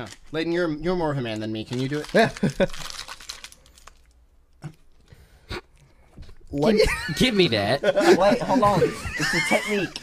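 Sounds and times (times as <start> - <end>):
speech: 0.0 - 2.9, 6.5 - 10.0
snack bag crinkling and tearing open: 0.0 - 4.2
laughter: 6.6 - 10.0.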